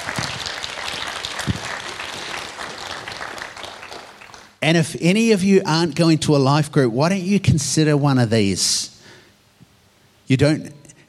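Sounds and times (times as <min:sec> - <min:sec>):
audience applause: 0:00.0 - 0:04.6
speech: 0:04.6 - 0:08.9, 0:10.3 - 0:10.8.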